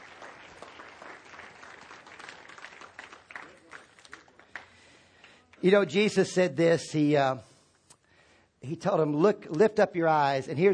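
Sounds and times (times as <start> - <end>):
audience clapping: 0.0 - 5.8
speech: 5.6 - 7.5, 8.7 - 10.7.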